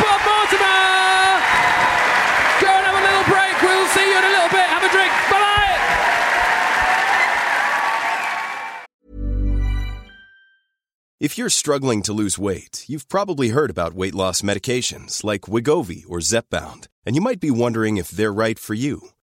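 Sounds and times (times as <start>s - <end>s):
live audience applauding: 0.0s - 8.9s
whoops and cheers: 0.0s - 8.9s
speech: 11.2s - 19.2s.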